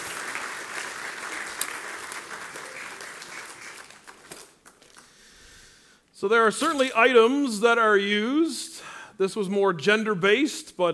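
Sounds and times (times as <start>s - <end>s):
audience applause: 0.0s - 5.1s
speech: 6.2s - 10.9s.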